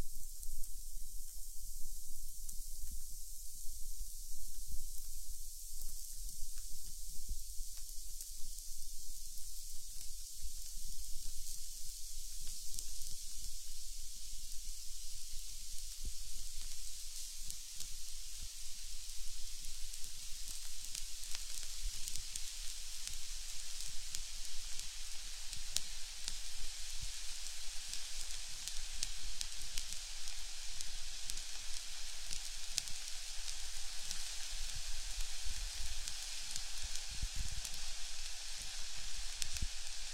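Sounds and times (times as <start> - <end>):
ear candle burning: 0.0 - 40.1.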